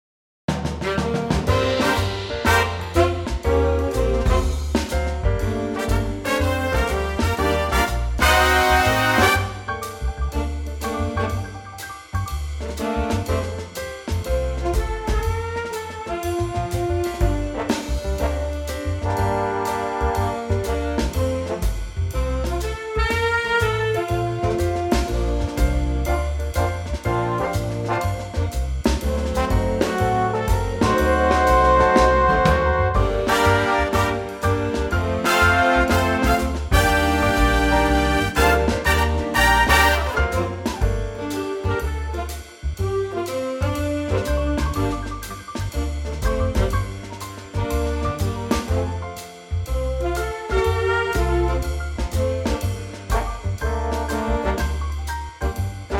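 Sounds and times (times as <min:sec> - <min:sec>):
big band music in G minor: 0:00.5 - 0:55.9.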